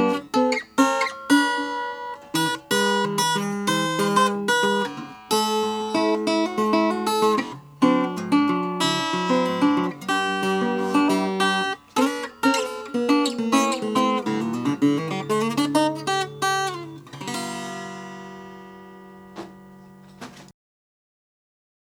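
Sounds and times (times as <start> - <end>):
1954 natural mahogany acoustic guitar: 0.0 - 20.5.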